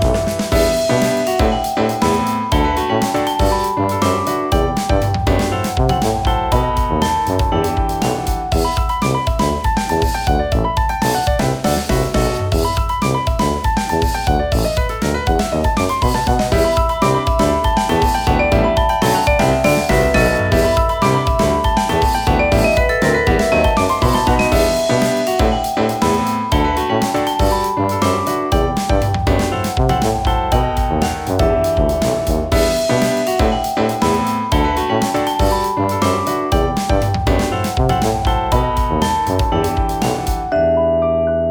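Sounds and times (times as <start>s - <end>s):
mountain breeze: 0.2s - 41.4s.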